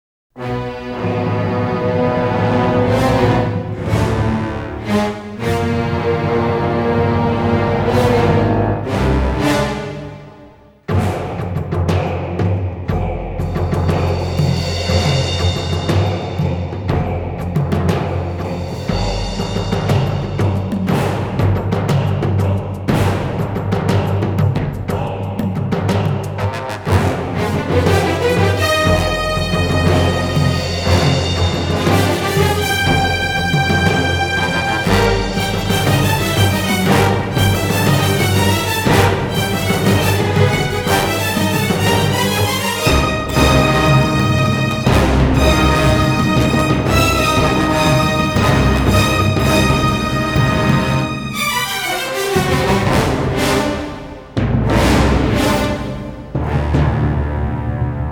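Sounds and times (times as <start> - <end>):
mountain battle music: 0.4 - 58.1.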